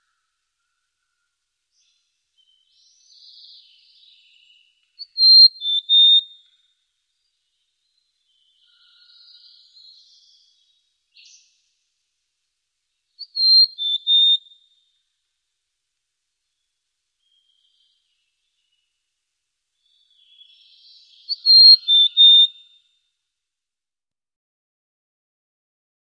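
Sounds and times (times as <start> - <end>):
bird whistling one phrase: 5.0 - 6.2, 13.2 - 14.5, 21.2 - 22.6.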